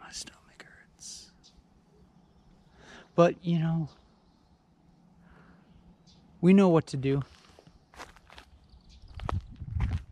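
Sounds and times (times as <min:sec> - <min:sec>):
speech: 0:00.1 - 0:00.4, 0:03.2 - 0:04.0, 0:06.4 - 0:07.4
footsteps of a person walking: 0:07.3 - 0:10.1.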